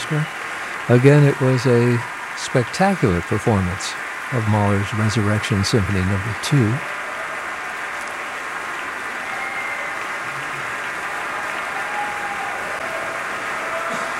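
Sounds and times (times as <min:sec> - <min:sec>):
concert audience applauding an orchestra: 0:00.0 - 0:14.1
speech: 0:00.1 - 0:07.0.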